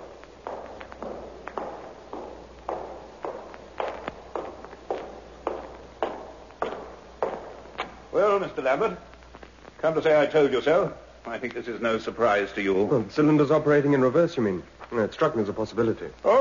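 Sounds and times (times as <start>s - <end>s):
footsteps hurrying across a hall: 0.0s - 8.6s
speech: 8.3s - 9.1s, 9.8s - 16.3s.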